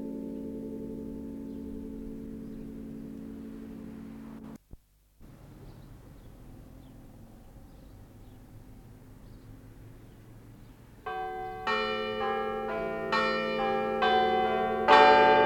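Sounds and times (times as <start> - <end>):
church bells of San Cosimo di Struppa in Genova ringing: 0.0 - 4.6, 11.0 - 15.4.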